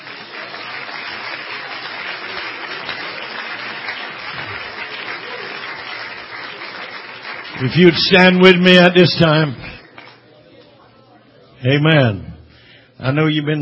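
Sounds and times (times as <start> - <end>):
church congregation applauding: 0.0 - 10.7
speech: 7.6 - 9.7, 11.6 - 12.3, 13.0 - 13.5.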